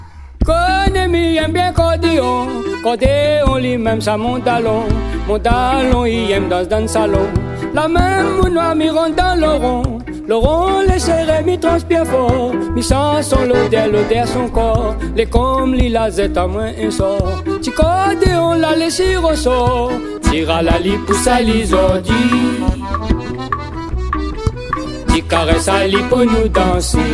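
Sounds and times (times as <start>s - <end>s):
accordion: 0.4s - 27.1s.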